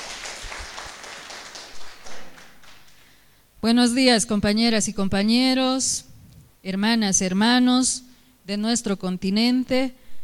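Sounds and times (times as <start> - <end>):
audience applause: 0.0 - 3.1
speech: 3.6 - 10.0.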